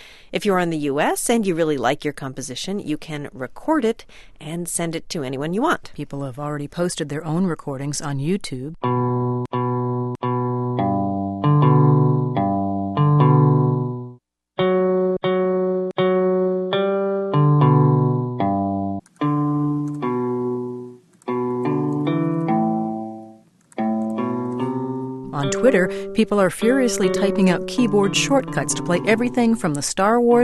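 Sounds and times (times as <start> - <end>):
speech: 0.3 - 9.6, 25.8 - 30.4
plucked notes from an online guitar: 8.8 - 30.4.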